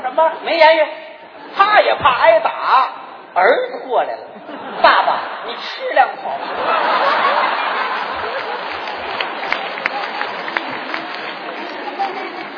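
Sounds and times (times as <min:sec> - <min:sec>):
speech: 0:00.2 - 0:07.3
laughter: 0:04.3 - 0:12.5
audience applause: 0:06.6 - 0:12.5.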